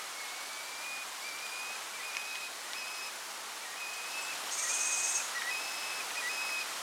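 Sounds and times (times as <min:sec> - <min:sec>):
northern caracara calling: 0:00.2 - 0:06.7.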